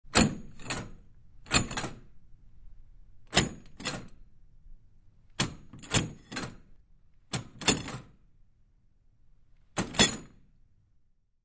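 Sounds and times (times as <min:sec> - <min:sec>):
wooden door push bar: 0:00.1 - 0:02.1, 0:03.3 - 0:04.2, 0:05.4 - 0:06.7, 0:07.3 - 0:08.2, 0:09.7 - 0:10.4.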